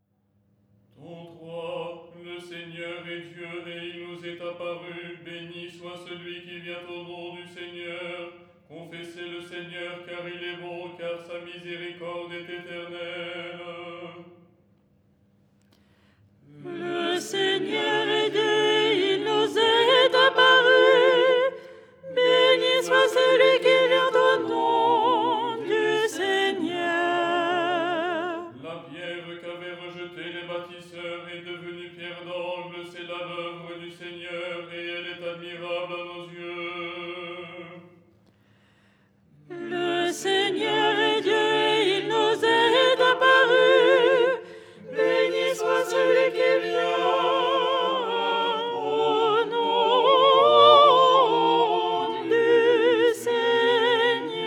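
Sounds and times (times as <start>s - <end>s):
soprano singing: 16.6s - 28.5s, 39.5s - 54.4s.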